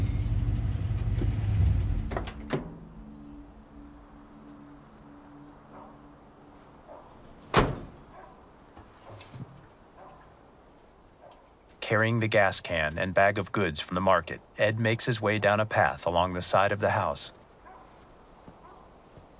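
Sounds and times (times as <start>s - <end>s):
car engine rumble pulling into a paved driveway under a carport: 0.0s - 3.6s
speech: 11.9s - 17.4s.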